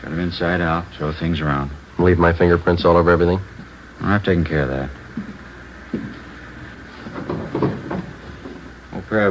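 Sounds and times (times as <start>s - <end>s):
speech: 0.0s - 5.0s
wooden knock: 7.1s - 8.6s.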